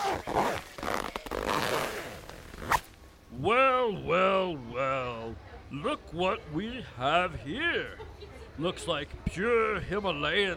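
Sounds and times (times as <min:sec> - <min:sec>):
luggage zipper yanked open: 0:00.0 - 0:02.9
speech: 0:03.4 - 0:08.0, 0:08.6 - 0:10.5.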